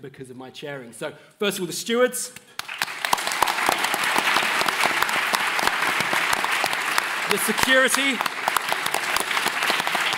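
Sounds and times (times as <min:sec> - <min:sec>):
speech: 0:00.0 - 0:02.9, 0:07.3 - 0:08.4
audience applause: 0:02.6 - 0:10.1.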